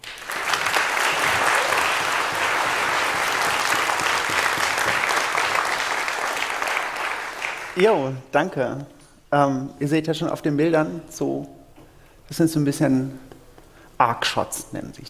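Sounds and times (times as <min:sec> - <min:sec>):
audience applause: 0:00.0 - 0:07.8
speech: 0:07.8 - 0:11.6, 0:12.3 - 0:13.2, 0:14.0 - 0:15.0.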